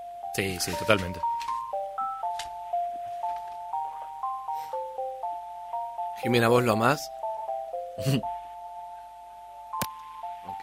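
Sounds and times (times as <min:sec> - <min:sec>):
telephone ringing: 0:00.0 - 0:07.8
speech: 0:00.4 - 0:01.6, 0:06.2 - 0:07.2, 0:08.0 - 0:08.4.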